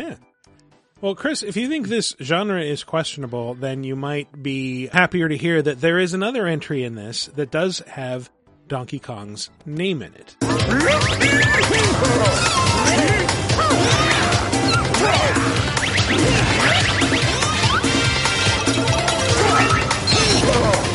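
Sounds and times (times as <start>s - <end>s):
upbeat video game music: 0.0s - 20.9s
speech: 1.0s - 13.1s.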